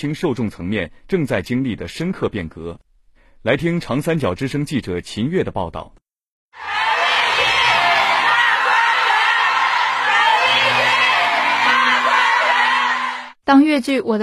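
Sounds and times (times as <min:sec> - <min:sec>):
speech: 0:00.0 - 0:02.8, 0:03.4 - 0:06.0, 0:13.5 - 0:14.2
theatre audience applauding: 0:06.6 - 0:13.3.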